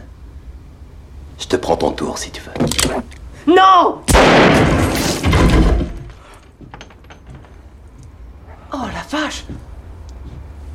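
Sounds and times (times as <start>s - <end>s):
speech: 1.4s - 5.3s, 8.8s - 9.7s
gunshot: 4.1s - 5.7s.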